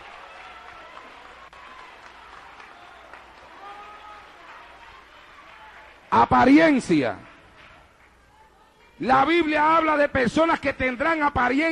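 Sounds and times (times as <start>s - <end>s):
audience applause: 0.0s - 9.0s
speech: 6.1s - 7.3s, 9.0s - 11.6s.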